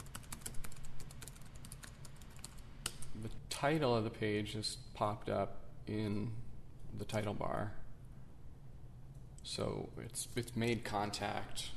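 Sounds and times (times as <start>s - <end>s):
keystrokes on a computer keyboard typing a URL: 0.0s - 3.1s
speech: 3.2s - 7.8s, 9.5s - 11.7s.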